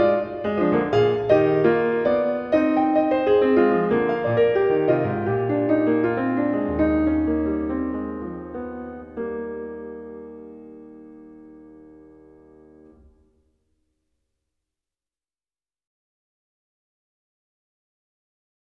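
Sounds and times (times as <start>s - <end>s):
fugue: 0.0s - 11.8s.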